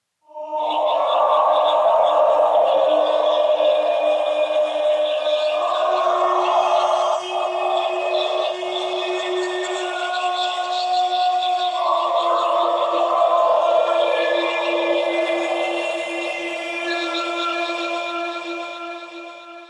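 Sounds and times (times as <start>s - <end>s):
choir singing: 0.4s - 18.9s.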